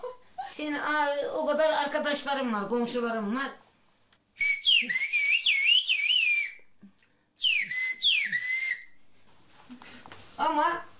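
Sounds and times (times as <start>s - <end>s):
speech: 0.5s - 3.6s, 10.4s - 10.9s
person whistling in whistled language: 4.4s - 6.7s, 7.4s - 9.0s.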